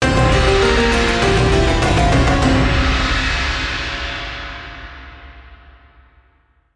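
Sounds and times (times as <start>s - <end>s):
bonus outro music: 0.0s - 4.6s.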